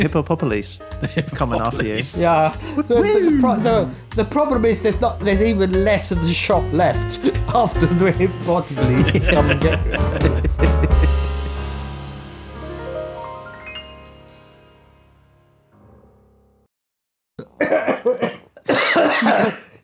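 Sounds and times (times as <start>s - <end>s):
speech: 0.0s - 11.2s
laughter: 1.0s - 3.8s, 8.6s - 11.6s
person coughing with dry biscuit stuck in throat: 17.4s - 19.8s.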